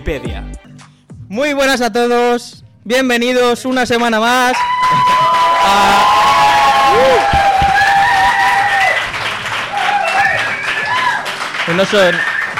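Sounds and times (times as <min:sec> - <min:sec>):
speech: 0:00.1 - 0:00.6, 0:01.3 - 0:06.2, 0:11.7 - 0:12.3
live audience applause and cheering: 0:04.5 - 0:12.5.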